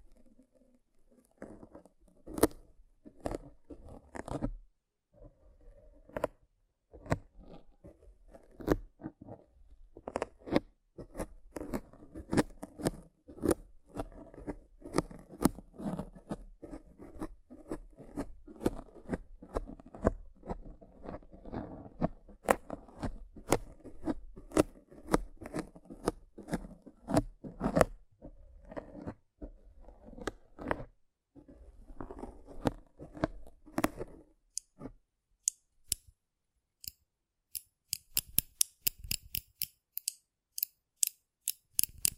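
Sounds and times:
clicks scrapes and crunches: 0.0 - 4.6, 6.0 - 36.1, 36.8 - 42.1
sharp ticks and snips: 36.8 - 42.1.

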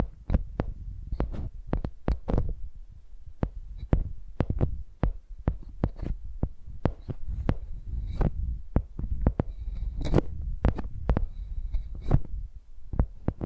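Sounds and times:
microphones used like pencils knocking and tapping: 0.0 - 2.6, 3.4 - 13.4.

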